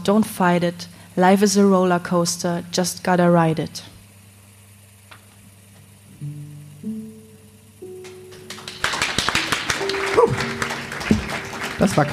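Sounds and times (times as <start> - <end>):
speech: 0.0 - 3.9, 12.0 - 12.1
sustained musical tones: 6.1 - 12.1
hands clapping along to a song: 8.0 - 12.1.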